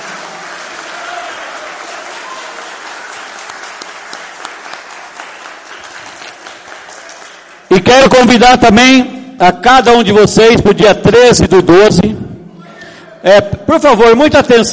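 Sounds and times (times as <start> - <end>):
audience applause for teachers: 0.0 - 7.7
speech: 7.8 - 12.2, 13.2 - 14.7.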